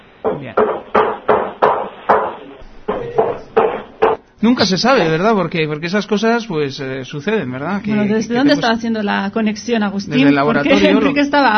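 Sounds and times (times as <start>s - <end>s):
hammer blows from construction work: 0.2s - 4.2s
speech: 0.4s - 1.1s, 4.4s - 11.5s.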